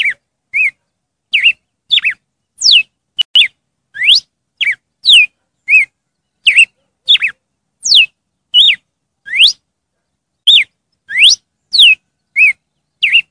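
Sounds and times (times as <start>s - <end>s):
red-cowled cardinal song: 0.0s - 9.6s, 10.4s - 13.2s.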